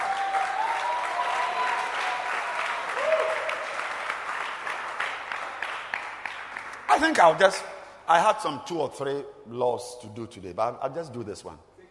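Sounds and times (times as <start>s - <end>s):
audience clapping hands: 0.0s - 7.3s
speech: 7.0s - 11.7s.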